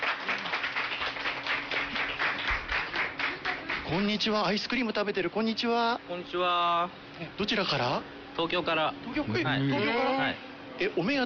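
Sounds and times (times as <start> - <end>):
crowd applause: 0.0 - 4.2
speech: 3.9 - 11.2.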